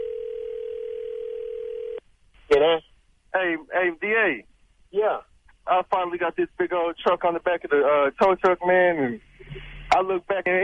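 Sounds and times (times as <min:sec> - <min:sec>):
telephone dial tone: 0:00.0 - 0:02.0
speech: 0:02.5 - 0:10.6.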